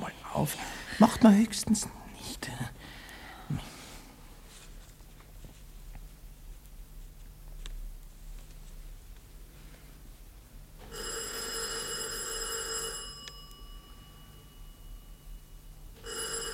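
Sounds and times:
faint low hum: 0.0s - 16.5s
speech: 0.4s - 2.8s
doorbell ringing in a shrill metallic burst: 10.9s - 16.5s.

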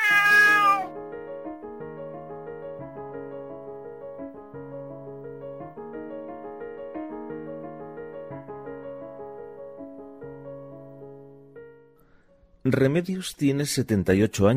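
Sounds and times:
cat meowing: 0.0s - 0.9s
soft melodic music: 0.8s - 13.2s
speech: 12.7s - 14.5s.

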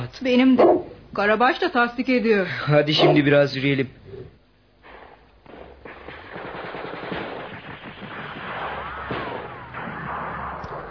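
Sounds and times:
speech: 0.1s - 4.0s
scattered single gunshots in a battle: 5.0s - 10.8s
machine-gun fire in a battle between Turkish and Greek forces: 5.8s - 10.3s.

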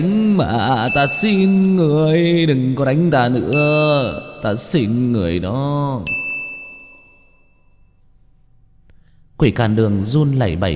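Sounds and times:
speech: 0.0s - 6.2s, 9.4s - 10.7s
game-system notification chime: 0.9s - 2.0s, 3.5s - 4.9s, 6.1s - 7.7s.

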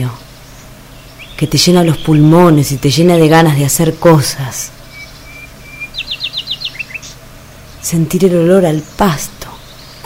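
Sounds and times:
speech: 0.0s - 0.2s, 1.4s - 4.8s, 7.9s - 9.4s
small bird chirping: 0.0s - 3.6s, 4.4s - 10.0s
faint steady hum: 0.0s - 10.0s.

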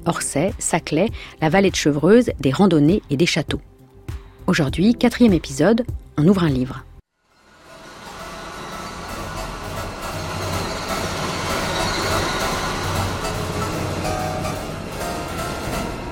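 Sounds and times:
speech: 0.0s - 3.7s, 4.5s - 6.9s
RER B commuter train running on rails: 7.3s - 16.1s.

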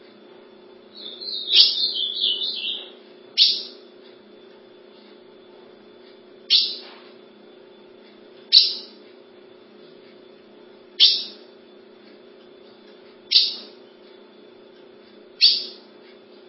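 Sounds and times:
ultramarine grosbeak singing: 0.9s - 3.9s, 6.4s - 6.9s, 8.4s - 9.0s, 11.0s - 11.5s, 13.3s - 14.0s, 15.4s - 15.9s.

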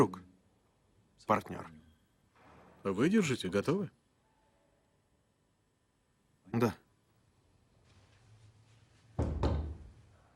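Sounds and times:
speech: 0.0s - 0.2s, 1.3s - 1.8s, 2.8s - 4.0s, 6.5s - 6.8s
knocking on a door: 9.2s - 10.0s.

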